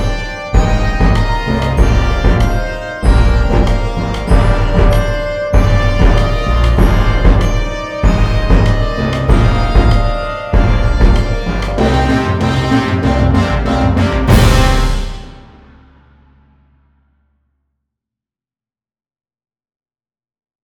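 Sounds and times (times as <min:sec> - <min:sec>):
Bhangra music: 0:00.0 - 0:16.0.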